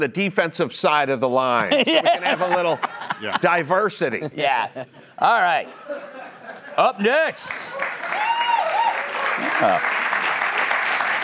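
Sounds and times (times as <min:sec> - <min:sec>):
speech: 0:00.0 - 0:06.2, 0:06.8 - 0:07.9, 0:09.6 - 0:10.0
laughter: 0:01.6 - 0:07.7
audience applause: 0:06.9 - 0:11.2.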